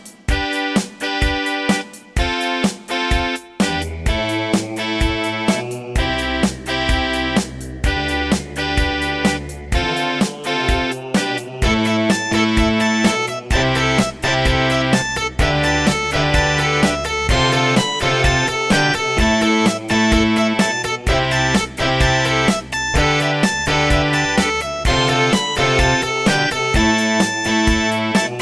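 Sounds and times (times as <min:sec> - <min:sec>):
Yamaha DB50XG synthesizer in GS mode: 0:00.5 - 0:28.3.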